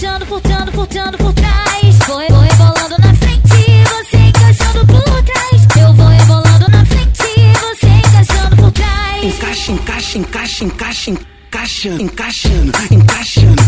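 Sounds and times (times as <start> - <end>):
funk bass: 0.4 - 8.8, 12.4 - 13.6.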